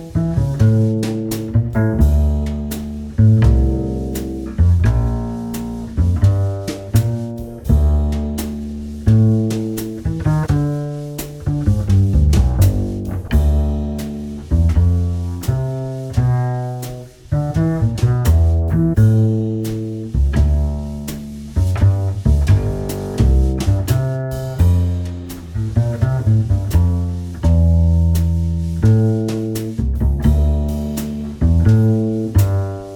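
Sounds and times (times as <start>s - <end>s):
backing track music: 0.0s - 32.9s.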